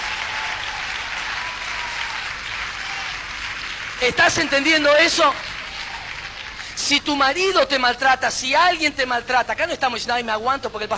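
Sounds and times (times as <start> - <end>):
audience applause: 0.0 - 7.0
speech: 4.0 - 5.5, 6.9 - 10.9.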